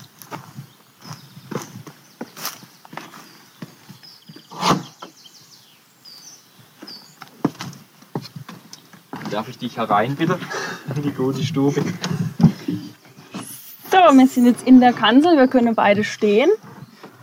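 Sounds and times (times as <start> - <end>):
footsteps on wooden ladder rungs climbing to a raised hunting stand: 0.0 - 4.5, 6.6 - 15.3
birds chirping: 0.0 - 17.2
speech: 9.3 - 12.2, 14.1 - 16.6.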